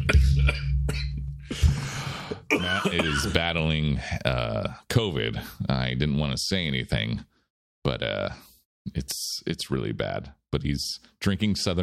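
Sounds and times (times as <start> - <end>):
person coughing after choking on coffee: 0.0 - 1.2, 2.5 - 3.4
speech: 2.6 - 11.8.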